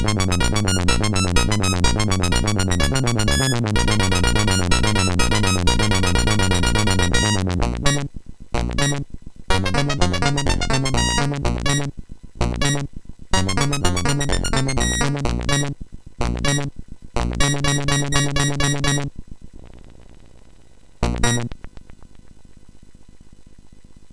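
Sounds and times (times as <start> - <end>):
MOS6581R4 SID chip game music: 0.0 - 8.0, 8.8 - 16.7, 17.3 - 19.1, 21.0 - 21.5.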